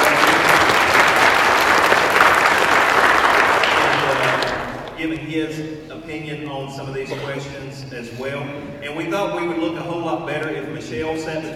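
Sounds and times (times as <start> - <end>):
audience applause: 0.0 - 5.0
speech: 5.4 - 11.5.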